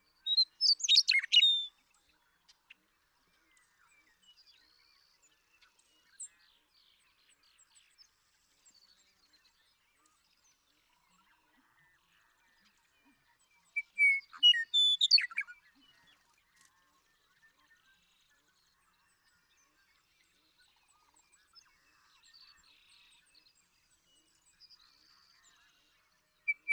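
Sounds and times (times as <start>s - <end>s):
Western meadowlark singing: 0.2s - 1.7s, 13.8s - 15.5s, 26.5s - 26.7s.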